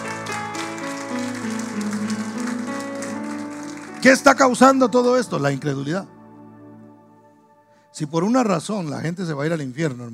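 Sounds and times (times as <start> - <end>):
audience applauding loudly: 0.0 - 4.8
sustained keyboard or organ notes: 0.0 - 9.1
speech: 4.0 - 6.2, 8.0 - 10.1.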